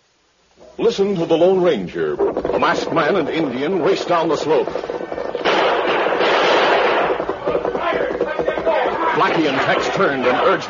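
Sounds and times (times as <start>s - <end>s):
speech: 0.6s - 5.0s, 9.3s - 10.6s
radio drama gunfire barrage: 2.2s - 10.6s.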